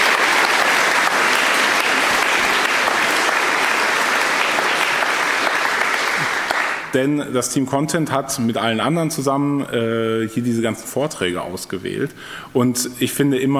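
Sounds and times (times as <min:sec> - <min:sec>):
audience applause: 0:00.0 - 0:06.9
speech: 0:06.9 - 0:13.5.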